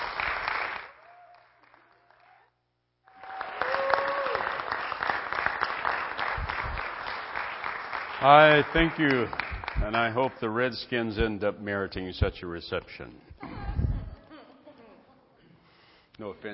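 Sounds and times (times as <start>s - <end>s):
audience standing and clapping for a pastor: 0.0s - 10.7s
speech: 8.2s - 13.3s, 16.2s - 16.5s.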